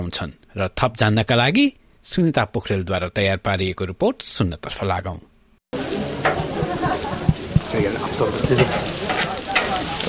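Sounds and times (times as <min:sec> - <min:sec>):
speech: 0:00.1 - 0:05.3, 0:07.7 - 0:09.0
democracy sausages sizzling as volunteers cook them at an Australian election: 0:05.8 - 0:10.0
stirring scrapes: 0:05.8 - 0:10.0
voices: 0:05.8 - 0:10.0.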